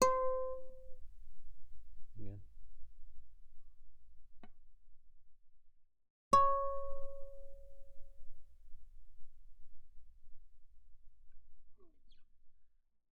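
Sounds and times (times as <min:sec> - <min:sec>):
guitar notes on G string, mezzo forte: 0:00.0 - 0:00.9, 0:06.4 - 0:07.8.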